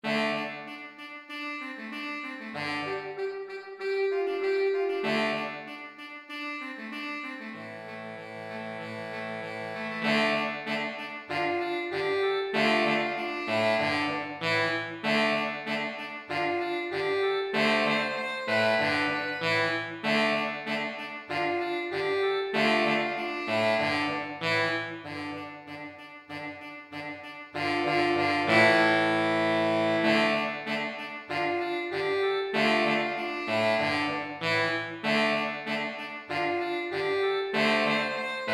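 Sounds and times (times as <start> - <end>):
saxophone: 0.0 - 38.5.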